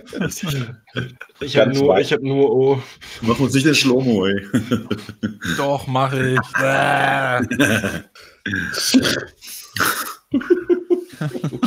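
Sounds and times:
laughter: 0.0s - 1.9s, 3.7s - 8.2s, 9.8s - 11.6s
speech: 0.0s - 11.6s
person burping on a stream: 5.3s - 10.3s.

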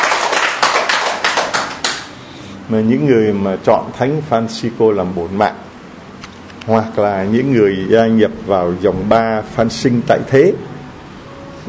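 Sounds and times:
congregation applause during a Catholic sermon: 0.0s - 2.1s
speech: 2.7s - 5.7s, 6.6s - 10.7s.

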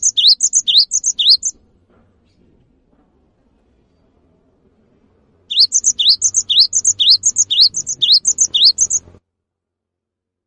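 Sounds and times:
cinereous tit whistled calls: 0.0s - 1.5s, 5.5s - 9.1s.

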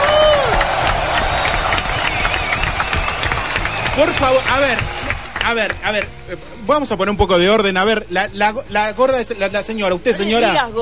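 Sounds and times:
applause and cheering: 0.0s - 6.2s
speech: 4.0s - 10.7s.

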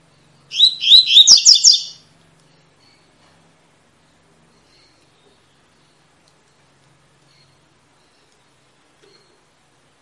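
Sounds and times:
double-collared seedeater singing: 0.5s - 2.0s.

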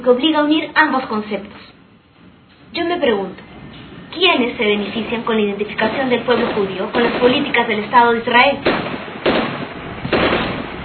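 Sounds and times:
speech: 0.0s - 1.8s, 2.7s - 3.5s, 4.1s - 9.1s
gunshot: 5.9s - 7.6s, 8.6s - 10.8s.

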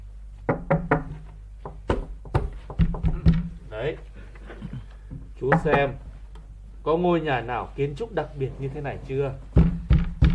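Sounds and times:
knocking on walls and a door: 0.5s - 3.6s, 5.1s - 6.0s, 9.5s - 10.3s
speech: 5.4s - 6.0s, 6.8s - 9.5s.

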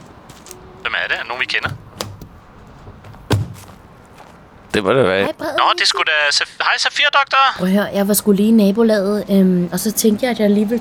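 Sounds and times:
car door shutting: 0.0s - 3.9s
dull thunks: 0.0s - 4.8s
car brakes squealing: 0.0s - 10.8s
speech: 1.0s - 1.8s, 4.8s - 10.8s.

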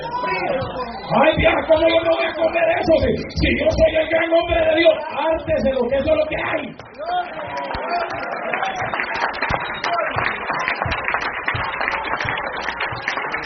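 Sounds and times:
speech: 1.1s - 7.4s
audience applause: 7.1s - 13.4s.

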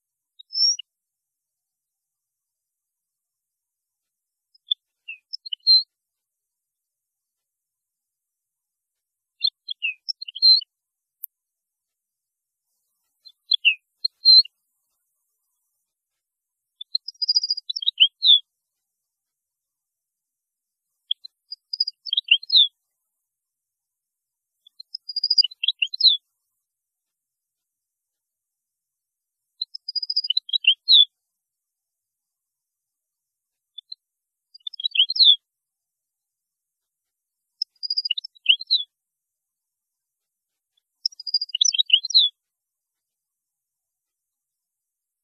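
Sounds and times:
European goldfinch song: 0.0s - 0.9s, 4.5s - 5.9s, 9.4s - 10.7s, 12.7s - 15.8s, 16.8s - 18.5s, 21.0s - 22.8s, 24.6s - 26.6s, 29.6s - 31.1s, 33.7s - 35.4s, 37.5s - 38.9s, 40.7s - 42.4s.

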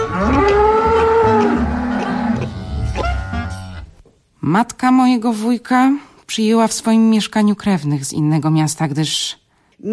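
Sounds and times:
cows mooing: 0.0s - 3.8s
speech: 4.5s - 9.9s.

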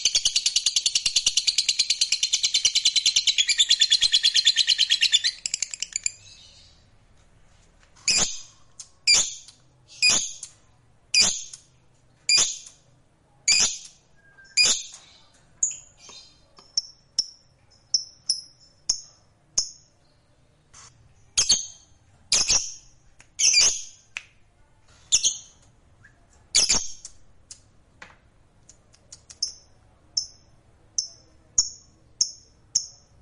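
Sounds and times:
lovebird squawks and chirps: 0.0s - 6.7s, 8.0s - 11.6s, 12.3s - 12.8s, 13.5s - 17.0s, 21.4s - 24.0s.

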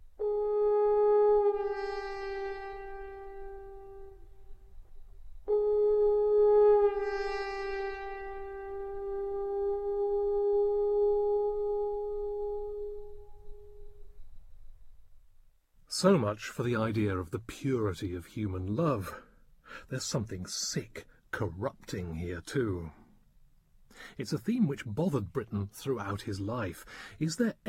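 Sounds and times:
hand-stopped horn playing rasping notes: 0.2s - 13.8s
speech: 16.0s - 19.3s, 19.9s - 23.0s, 24.1s - 27.6s.

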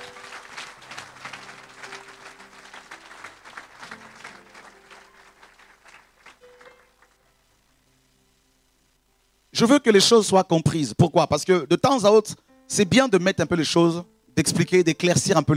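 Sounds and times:
church congregation applauding after a fundraising announcement: 0.0s - 7.4s
faint sustained organ or keyboard tone: 0.0s - 9.3s
speech: 9.6s - 15.5s.

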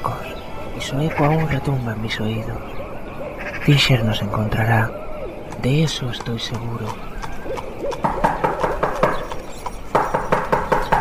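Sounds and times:
speech: 0.8s - 2.8s, 3.7s - 5.0s, 5.6s - 7.0s
knocking on a door: 8.0s - 9.3s, 9.9s - 10.9s.

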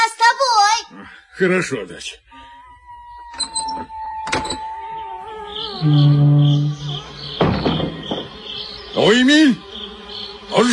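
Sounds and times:
speech: 1.4s - 2.5s, 5.8s - 6.8s, 9.0s - 9.7s, 10.5s - 10.7s
wooden shed doors being flung open: 6.0s - 8.7s.

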